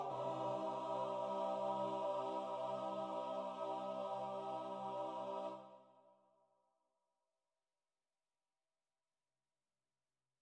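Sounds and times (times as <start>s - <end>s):
liturgical music playback: 0.0s - 5.8s.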